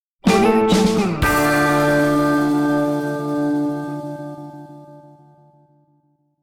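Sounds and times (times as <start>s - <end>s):
wild west logo jingle: 0.3s - 5.3s.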